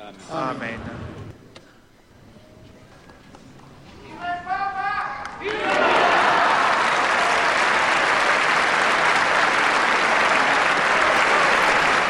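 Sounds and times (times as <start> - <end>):
speech: 0.3 - 1.2
crowd applause: 5.4 - 12.0.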